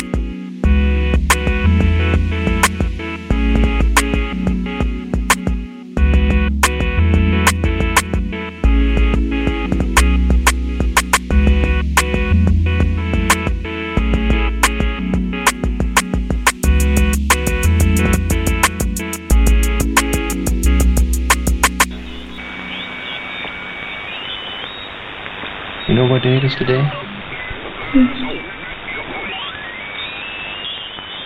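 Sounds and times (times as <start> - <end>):
shortwave radio station playing rhythmic music: 0.0 - 31.2
shortwave radio static: 21.8 - 31.2
faint wavering whistles: 22.0 - 25.0, 25.8 - 31.2.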